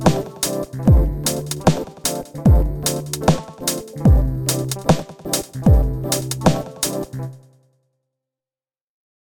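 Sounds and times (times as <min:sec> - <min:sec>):
warm slow hip-hop beat: 0:00.0 - 0:07.2.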